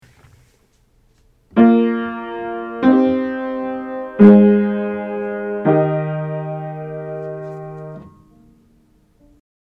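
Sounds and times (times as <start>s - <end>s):
root position triads for aural training: 1.5s - 8.4s.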